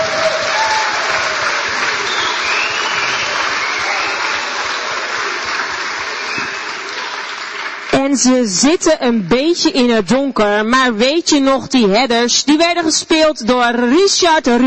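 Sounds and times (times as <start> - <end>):
audience applause: 0.0 - 8.3
speech: 8.1 - 14.6.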